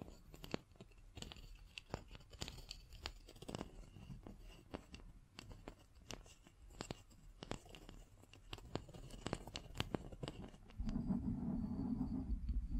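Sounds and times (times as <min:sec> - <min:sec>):
scratching and tapping: 0:00.0 - 0:12.7
low rumble with faint wavering tone: 0:10.8 - 0:12.7.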